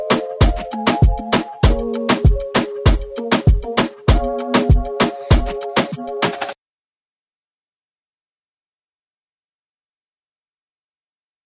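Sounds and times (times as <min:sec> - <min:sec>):
phonk moombahton beat: 0:00.0 - 0:06.6.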